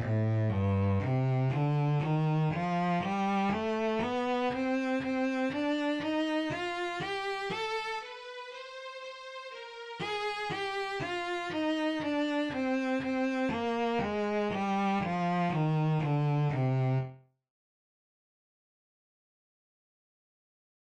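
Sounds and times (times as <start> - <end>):
bass playing two-octave melodic minor scale: 0.0 - 8.4, 10.0 - 17.2.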